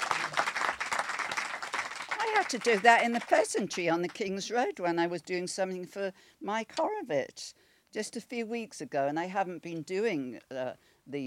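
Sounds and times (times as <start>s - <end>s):
audience applause: 0.0s - 3.5s
speech: 2.3s - 11.2s.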